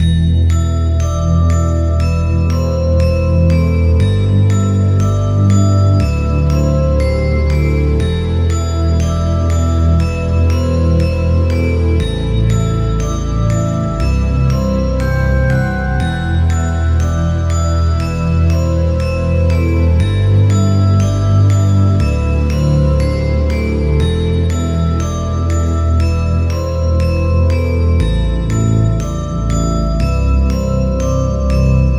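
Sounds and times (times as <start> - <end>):
mysterious bells loop: 0.0 - 31.9.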